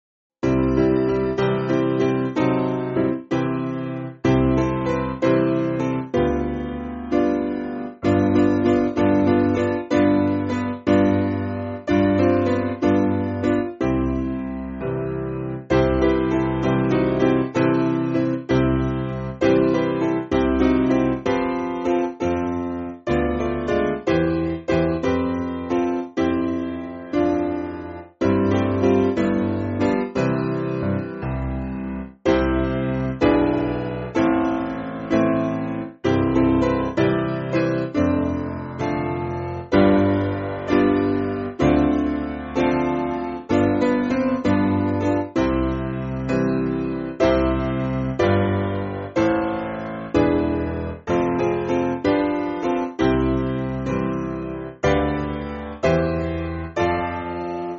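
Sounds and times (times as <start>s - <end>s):
church piano music: 0.4s - 57.7s.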